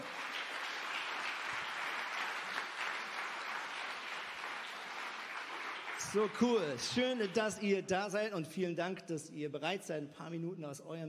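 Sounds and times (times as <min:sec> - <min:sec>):
audience applause: 0:00.0 - 0:07.4
speech: 0:06.0 - 0:11.0.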